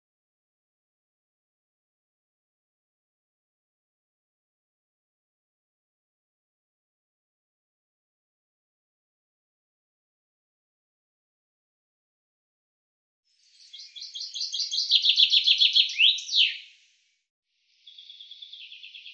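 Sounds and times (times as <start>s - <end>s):
common chaffinch singing: 13.4s - 16.8s, 17.8s - 19.1s.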